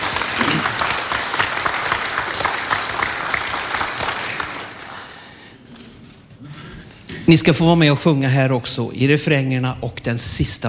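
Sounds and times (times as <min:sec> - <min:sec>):
audience applause: 0:00.0 - 0:05.4
speech: 0:07.3 - 0:10.6.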